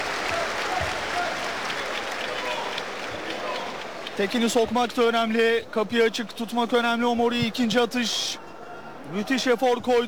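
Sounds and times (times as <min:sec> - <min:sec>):
arena crowd applauding a basketball player: 0:00.0 - 0:04.6
speech: 0:04.2 - 0:08.5, 0:09.1 - 0:10.0.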